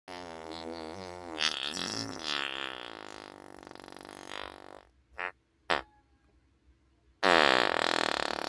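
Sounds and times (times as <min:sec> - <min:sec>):
person farting: 0:00.1 - 0:05.9, 0:07.2 - 0:08.4.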